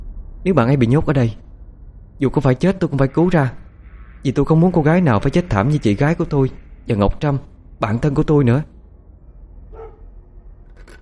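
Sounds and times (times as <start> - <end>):
steady low rumble: 0.0 - 11.0
speech: 0.4 - 1.4, 2.2 - 3.6, 4.2 - 8.7
dog barking and yelping: 9.7 - 10.2.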